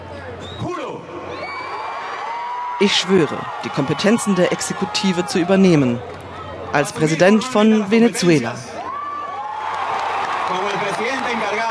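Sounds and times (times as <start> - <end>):
cheering of thousands at a rally: 0.0 - 7.6, 8.6 - 11.6
shouts: 1.2 - 5.6, 8.7 - 10.9
speech: 2.8 - 8.8.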